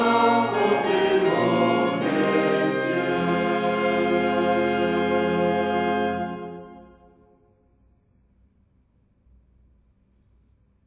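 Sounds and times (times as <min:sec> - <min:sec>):
chorale: 0:00.0 - 0:07.9.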